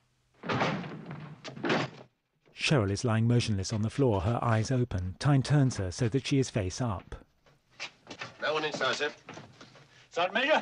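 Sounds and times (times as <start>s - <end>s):
door splintering crash: 0.4s - 2.2s
heavy impacts breaking in a bolted door: 0.4s - 2.2s
speech: 2.6s - 7.2s, 7.8s - 9.4s, 10.2s - 10.6s.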